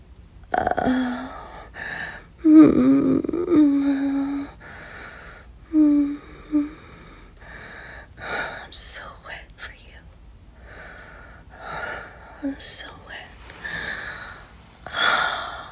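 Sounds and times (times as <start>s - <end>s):
low voiced moan: 0.5s - 1.7s, 2.4s - 4.6s, 5.7s - 7.2s
speech: 0.6s - 1.2s, 2.6s - 3.6s
heavy breathing: 4.2s - 8.2s, 10.6s - 12.3s, 13.5s - 15.7s.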